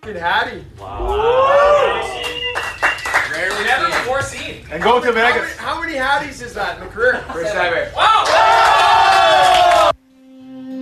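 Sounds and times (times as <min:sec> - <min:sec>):
speech: 0:00.0 - 0:02.1, 0:03.4 - 0:09.6
hockey players roaring and whooping in the locker room after a Washington Capitals win: 0:00.8 - 0:02.6, 0:08.0 - 0:09.9.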